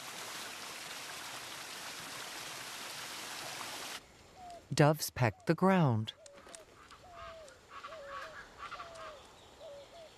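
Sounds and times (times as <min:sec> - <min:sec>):
waterfall pouring into a pool: 0:00.0 - 0:04.0
speech: 0:04.7 - 0:06.2.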